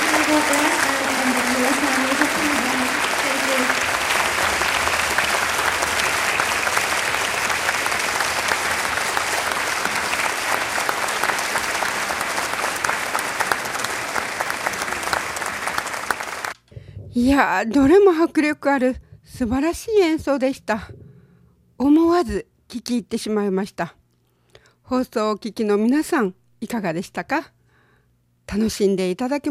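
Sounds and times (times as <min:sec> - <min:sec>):
audience applause: 0:00.0 - 0:16.6
speech: 0:17.2 - 0:21.0, 0:21.8 - 0:24.0, 0:24.9 - 0:27.6, 0:28.5 - 0:29.4.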